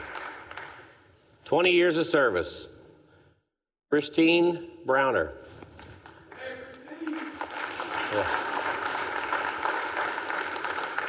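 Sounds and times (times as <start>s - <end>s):
audience applause: 0.0s - 0.8s, 6.8s - 11.0s
speech: 1.5s - 2.7s, 3.9s - 5.4s, 8.1s - 8.4s.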